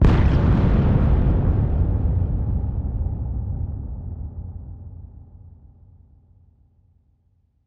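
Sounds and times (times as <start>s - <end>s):
bomb exploding: 0.0s - 3.8s.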